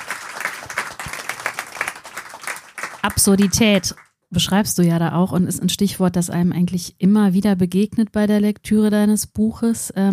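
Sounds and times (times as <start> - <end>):
audience applause: 0.0 - 4.1
speech: 3.0 - 10.1.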